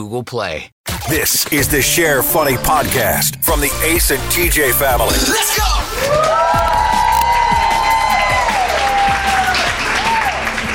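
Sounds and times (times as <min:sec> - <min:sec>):
speech: 0:00.0 - 0:06.6
live audience cheering and applauding at the Wormack in Charlotte's Plaza Midwood section: 0:05.8 - 0:10.7.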